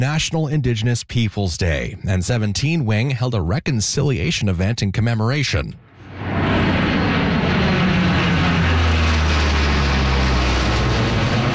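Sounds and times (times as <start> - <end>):
speech: 0.0 - 5.9
Hercules military aircraft flyover: 5.8 - 11.5.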